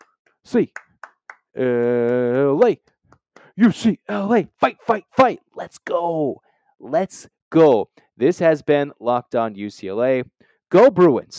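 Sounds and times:
rhythmic hand claps: 0.0 - 4.0
speech: 0.5 - 0.9, 1.6 - 2.9, 3.6 - 11.3.

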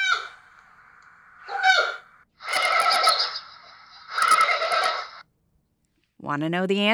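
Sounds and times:
giant panda calls: 0.0 - 0.4, 1.4 - 5.1
speech: 6.3 - 6.9.

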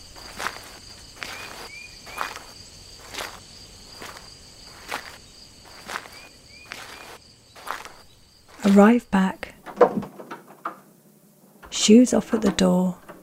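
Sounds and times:
footsteps walking through woods at night: 0.0 - 9.4
crickets and insects chirring: 0.0 - 13.2
speech: 8.7 - 9.4, 11.9 - 13.0.

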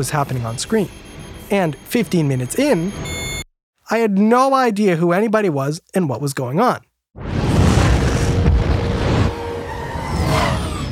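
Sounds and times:
faint high whine: 0.0 - 3.2
speech: 0.0 - 3.2, 3.9 - 7.3
explosions booming: 7.2 - 10.6.

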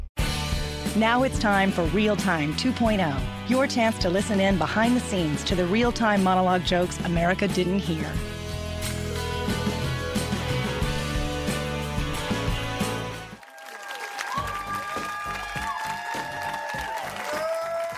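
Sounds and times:
upbeat band music: 0.2 - 13.3
speech: 0.9 - 8.3
studio audience applause and cheering: 13.1 - 17.9.

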